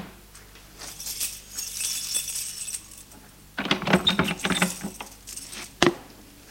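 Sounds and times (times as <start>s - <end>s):
keys jangling: 0.7s - 5.8s
metallic lock clatter: 2.5s - 5.9s.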